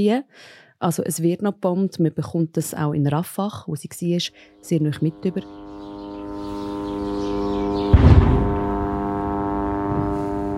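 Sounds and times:
speech: 0:00.0 - 0:05.6
military drones buzzing overhead: 0:04.0 - 0:10.5.

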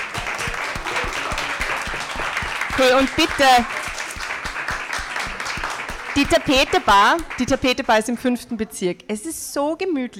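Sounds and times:
audience applause: 0:00.0 - 0:07.8
speech: 0:02.8 - 0:03.8, 0:06.2 - 0:10.1.

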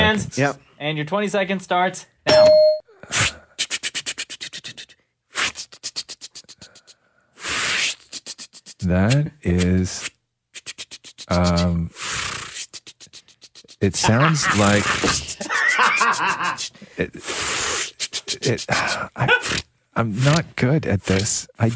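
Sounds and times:
speech: 0:00.1 - 0:03.3, 0:08.8 - 0:10.1, 0:11.3 - 0:12.0, 0:13.8 - 0:17.6, 0:18.3 - 0:21.7
voice imitating rotary phone dialing: 0:03.1 - 0:15.4, 0:16.5 - 0:21.7
laughter: 0:13.8 - 0:16.8, 0:18.4 - 0:19.5.

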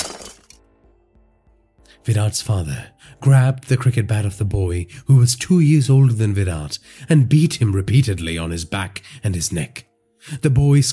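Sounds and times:
cricket ball shattering a television picture tube: 0:00.0 - 0:00.6
settling debris rattling: 0:00.0 - 0:00.6
speech: 0:02.0 - 0:10.9.

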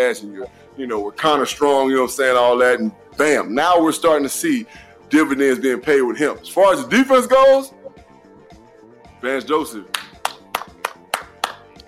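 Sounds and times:
speech: 0:00.0 - 0:07.8, 0:09.2 - 0:10.0
hand clapping: 0:09.9 - 0:11.8.

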